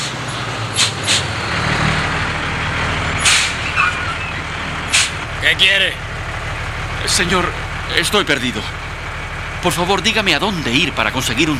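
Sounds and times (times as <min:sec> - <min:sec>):
heavy truck engine rumbling: 0:00.0 - 0:11.5
truck air brakes hissing: 0:00.8 - 0:01.4, 0:03.2 - 0:05.2
speech: 0:05.5 - 0:06.0, 0:07.1 - 0:08.8, 0:09.6 - 0:11.5.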